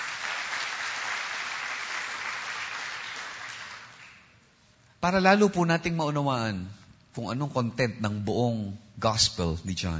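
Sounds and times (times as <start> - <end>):
church congregation applauding: 0.0 - 4.3
speech: 5.0 - 9.9.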